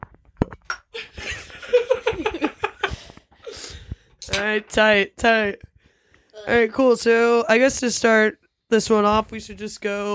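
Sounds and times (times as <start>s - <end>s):
glasses clinking in a toast: 0.4s - 1.0s
laughter: 1.0s - 3.7s
speech: 4.4s - 5.7s, 6.4s - 10.1s.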